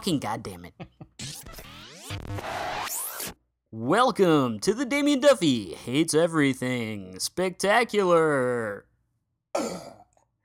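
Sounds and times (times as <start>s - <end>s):
speech: 0.0s - 0.9s, 2.3s - 3.0s, 3.7s - 8.9s, 9.5s - 10.0s
burp caught in the throat: 9.5s - 10.2s.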